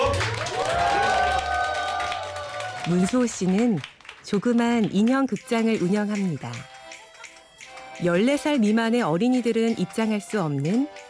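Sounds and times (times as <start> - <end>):
audience applause: 0.0 - 4.2
speech: 2.9 - 6.7, 8.0 - 11.0.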